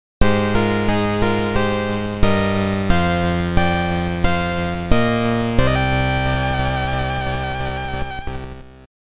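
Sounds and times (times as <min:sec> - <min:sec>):
game over jingle: 0:00.2 - 0:08.8.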